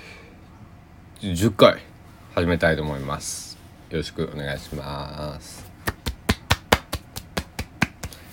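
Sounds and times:
speech: 0:01.2 - 0:05.7
hand clapping beat: 0:05.8 - 0:08.3.

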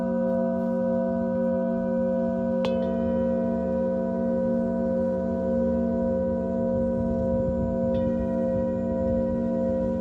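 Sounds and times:
singing bowls droning for sound healing: 0:00.0 - 0:10.0.

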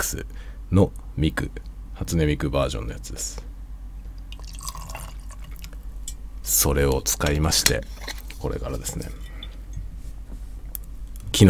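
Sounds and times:
speech: 0:00.0 - 0:03.5, 0:06.5 - 0:09.2
drink being poured: 0:04.3 - 0:05.9.

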